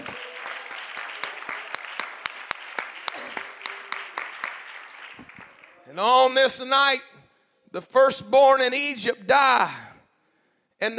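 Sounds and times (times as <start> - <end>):
church congregation clapping hands rhythmically during a sermon: 0.0 - 5.8
church congregation applause: 0.0 - 5.9
speech: 5.9 - 7.1, 7.7 - 9.8, 10.8 - 10.9.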